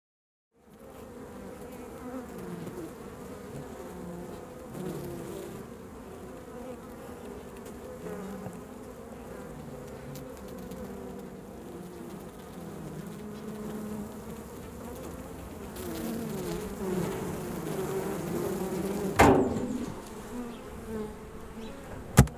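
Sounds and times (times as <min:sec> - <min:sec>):
honey bees humming: 0:00.6 - 0:22.3
sharp knocks: 0:19.2 - 0:20.0.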